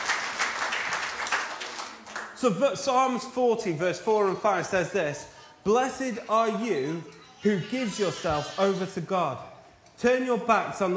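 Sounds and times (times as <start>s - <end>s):
audience clapping: 0.0s - 2.5s
speech: 2.4s - 10.9s.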